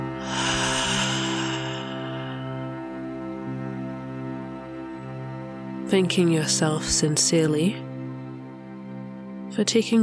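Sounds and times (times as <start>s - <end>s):
deep breath in through the nose and out through the mouth: 0.0s - 3.5s
sustained musical drone: 0.0s - 5.8s
speech: 5.9s - 7.9s, 9.6s - 10.0s.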